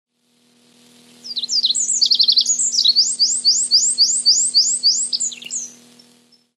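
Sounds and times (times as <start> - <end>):
faint steady hum: 0.1 - 6.5
Olive-backed pipit high sharp calls: 1.2 - 6.5.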